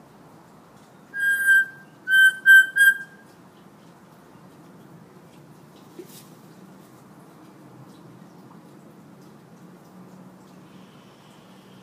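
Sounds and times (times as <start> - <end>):
hill myna whistling: 1.2 - 3.2.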